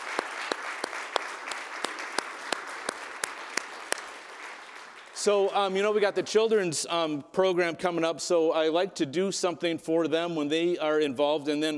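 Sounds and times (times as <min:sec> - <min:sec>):
audience round of applause: 0:00.0 - 0:05.8
speech: 0:05.2 - 0:11.7.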